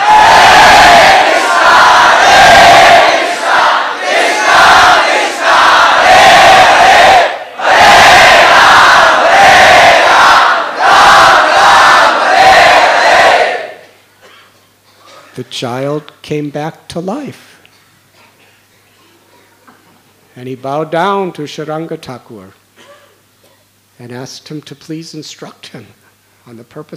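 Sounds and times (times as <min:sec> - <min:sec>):
crowd chanting in unison: 0:00.0 - 0:13.8
speech: 0:15.6 - 0:17.5, 0:20.4 - 0:22.6, 0:24.0 - 0:26.9.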